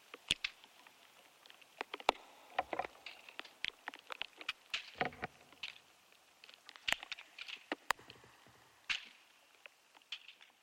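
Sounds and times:
clicks and ticks inside an ash tree: 0:00.0 - 0:10.6
creaking and knocking inside an ash tree: 0:05.0 - 0:05.4.

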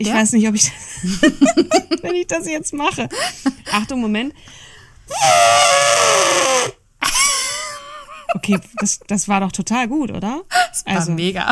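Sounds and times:
speech: 0:00.0 - 0:06.8, 0:08.3 - 0:11.5
laughter: 0:01.0 - 0:02.2, 0:07.0 - 0:09.0
voice imitating an elephant trumpeting: 0:05.1 - 0:06.8.

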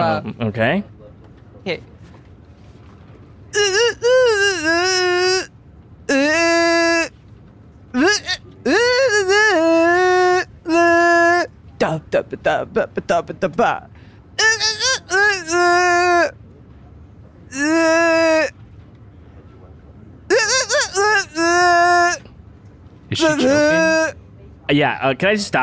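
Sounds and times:
speech: 0:00.0 - 0:01.0, 0:01.6 - 0:01.9, 0:08.1 - 0:08.8, 0:11.8 - 0:14.6, 0:17.5 - 0:18.5, 0:23.1 - 0:25.6
person humming a video game level melody: 0:03.6 - 0:05.5, 0:06.1 - 0:07.1, 0:08.0 - 0:11.5, 0:14.4 - 0:16.3, 0:17.5 - 0:18.5, 0:20.3 - 0:22.2.

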